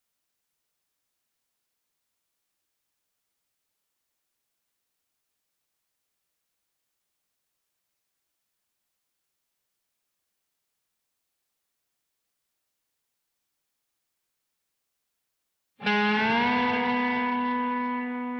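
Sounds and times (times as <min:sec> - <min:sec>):
bass guitar: 0:15.8 - 0:18.3.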